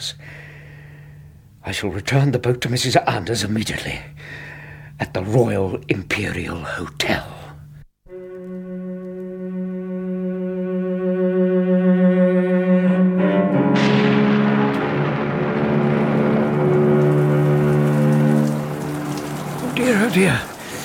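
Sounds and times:
speech: 0:00.0 - 0:00.4, 0:01.6 - 0:04.4, 0:05.0 - 0:07.4
low humming drone: 0:08.1 - 0:19.8
heavy rain: 0:14.3 - 0:20.8.

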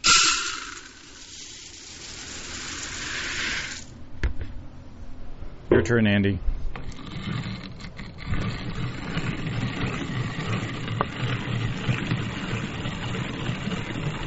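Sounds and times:
hand-cranked grain mill grinding grain for brewing beer: 0:00.0 - 0:03.9, 0:06.8 - 0:14.2
speech: 0:05.8 - 0:06.5.

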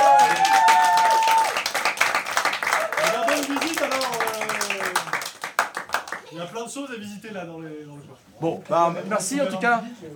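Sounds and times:
small group of people clapping: 0:00.0 - 0:06.4
speech: 0:06.6 - 0:10.1.

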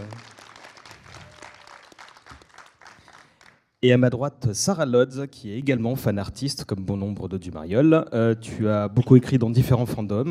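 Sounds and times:
audience applause: 0:00.0 - 0:03.7
speech: 0:03.8 - 0:10.2.

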